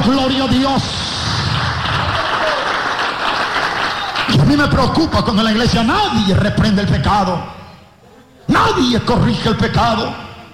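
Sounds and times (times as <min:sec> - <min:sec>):
speech: 0:00.1 - 0:01.2, 0:04.5 - 0:07.6, 0:08.5 - 0:10.2
church congregation applauding in praise of the Lord: 0:00.8 - 0:05.2.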